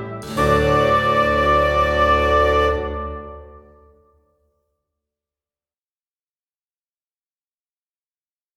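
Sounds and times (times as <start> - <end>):
trumpet playing a minuet: 0.0 - 3.8.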